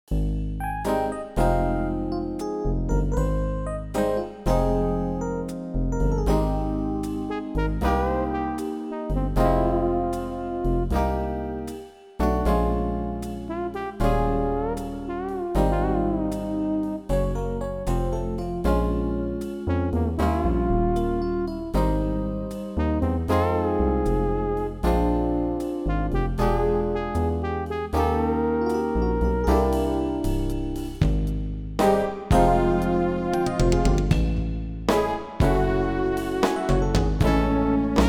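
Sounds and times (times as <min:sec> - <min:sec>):
Yamaha V50 synthesizer: 0:00.1 - 0:31.2, 0:31.8 - 0:38.0.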